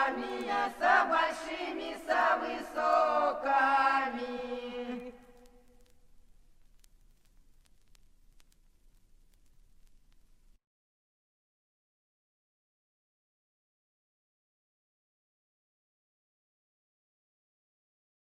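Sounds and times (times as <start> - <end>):
polyphonic singing: 0.0 - 5.7.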